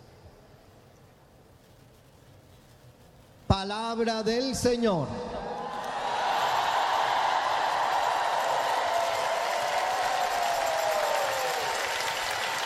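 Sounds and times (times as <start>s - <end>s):
speech: 3.5s - 5.3s
audience applause in a convention center auditorium: 5.7s - 12.6s.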